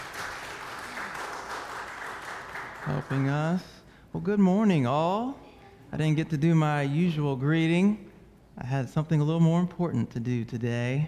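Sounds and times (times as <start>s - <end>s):
applause for a praise team at a Sunday morning church service: 0.0s - 3.4s
speech: 2.8s - 11.0s.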